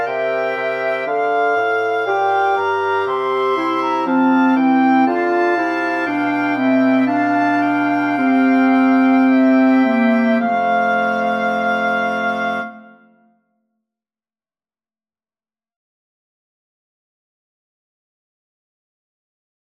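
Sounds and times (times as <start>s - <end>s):
recorder quartet: 0.0s - 13.1s.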